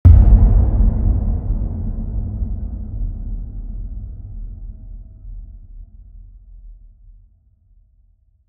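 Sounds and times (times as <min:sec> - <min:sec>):
low cinematic hits: 0:00.0 - 0:05.4.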